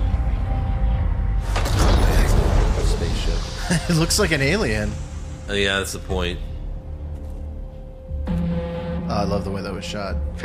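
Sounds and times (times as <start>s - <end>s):
Terminator teleporting film sound effect rumble: 0.0s - 10.4s
crackling hissing burst: 1.6s - 6.2s
speech: 3.7s - 6.5s, 9.2s - 10.4s.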